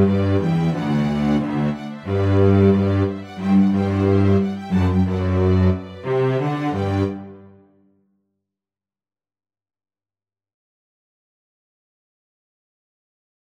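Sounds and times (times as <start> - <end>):
cello playing a polka: 0.0 - 7.6.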